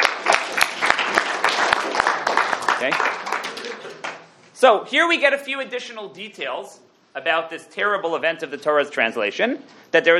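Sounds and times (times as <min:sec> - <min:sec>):
audience applause after a lecture: 0:00.0 - 0:04.3
speech: 0:02.8 - 0:03.3, 0:04.6 - 0:10.1.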